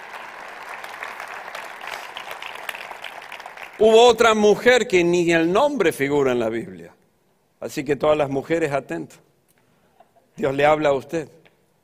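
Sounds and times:
audience applause: 0.0s - 3.8s
speech: 3.8s - 7.0s, 7.6s - 9.2s, 10.4s - 11.4s.

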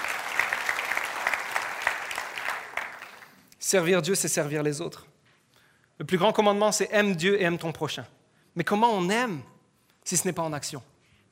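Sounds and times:
audience applause: 0.0s - 3.4s
speech: 3.7s - 5.1s, 6.0s - 10.9s.

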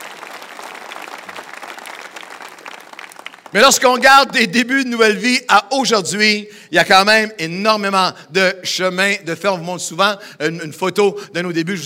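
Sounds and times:
audience applause: 0.0s - 3.8s
speech: 3.5s - 11.8s.

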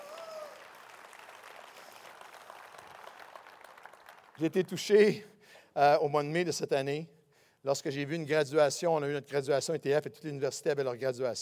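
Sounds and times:
audience applauding: 0.0s - 4.6s
speech: 4.4s - 11.3s.

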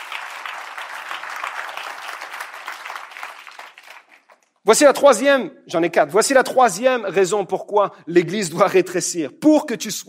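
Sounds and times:
audience applauding: 0.0s - 4.5s
speech: 4.7s - 10.0s.

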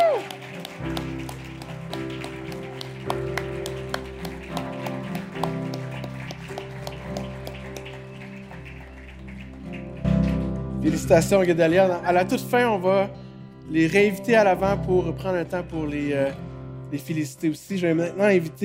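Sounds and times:
audience applause: 0.0s - 10.6s
speech: 10.9s - 18.6s.

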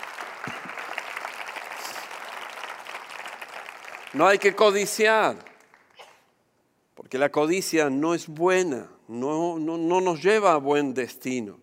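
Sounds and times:
audience applause: 0.0s - 6.0s
speech: 4.1s - 5.5s, 7.1s - 11.6s.

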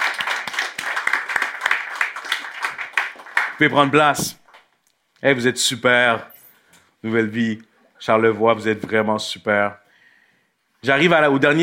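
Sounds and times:
congregation applauding during a church service: 0.0s - 4.7s
speech: 3.6s - 4.4s, 5.2s - 6.4s, 7.0s - 9.8s, 10.8s - 11.6s.

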